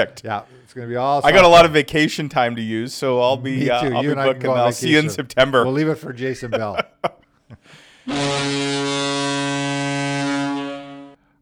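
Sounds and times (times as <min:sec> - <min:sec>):
speech: 0:00.0 - 0:08.8
laughter: 0:01.3 - 0:08.6
meeting reminder notification alert horn-like tone: 0:08.1 - 0:11.2.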